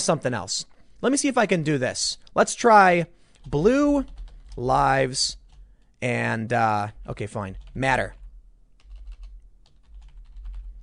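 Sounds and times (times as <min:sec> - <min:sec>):
speech: 0:00.0 - 0:05.4, 0:06.0 - 0:08.2
typing on a computer keyboard: 0:03.3 - 0:05.9, 0:07.5 - 0:10.8.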